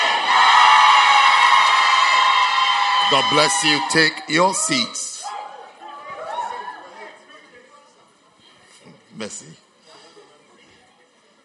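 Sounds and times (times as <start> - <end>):
audience shouting amen: 0.0 - 5.6
speech: 3.1 - 5.1, 9.2 - 9.7.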